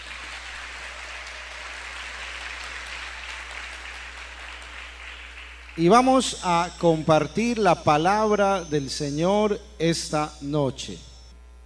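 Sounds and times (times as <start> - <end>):
crowd applause: 0.0 - 6.8
speech: 5.8 - 11.1.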